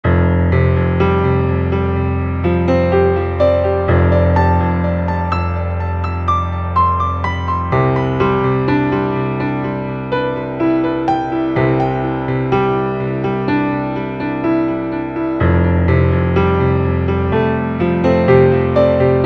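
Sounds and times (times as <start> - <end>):
piano: 0.0 - 19.2.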